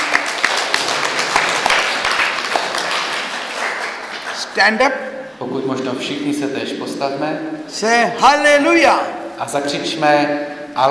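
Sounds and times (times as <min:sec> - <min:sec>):
crowd clapping: 0:00.0 - 0:04.6
speech: 0:04.6 - 0:10.8.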